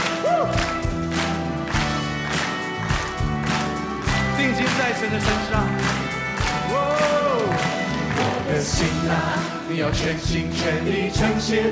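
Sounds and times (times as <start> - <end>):
audience rhythmic clapping during a Christian praise song: 0.0 - 8.9
Christian praise song music with a sustained melodic line: 0.0 - 11.6
speech: 4.8 - 6.0, 8.5 - 11.6.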